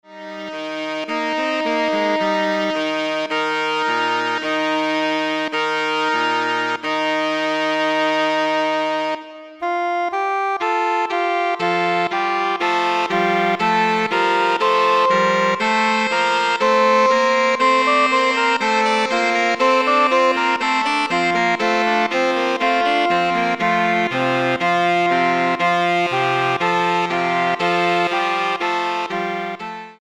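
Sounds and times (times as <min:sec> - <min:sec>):
saxophone ensemble: 0:00.1 - 0:29.9.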